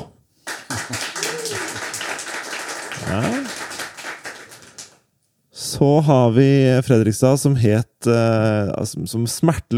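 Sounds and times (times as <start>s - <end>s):
audience clapping: 0.4s - 5.1s
speech: 0.9s - 1.1s, 3.1s - 3.5s, 5.8s - 9.7s.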